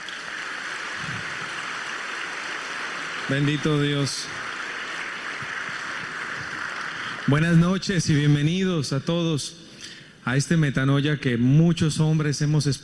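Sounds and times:
audience applause: 0.0 - 7.8
speech: 3.3 - 4.4, 7.3 - 12.8.

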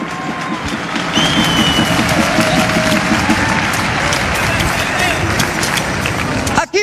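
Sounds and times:
audience clapping: 0.0 - 6.7
high whistles: 0.1 - 3.3.

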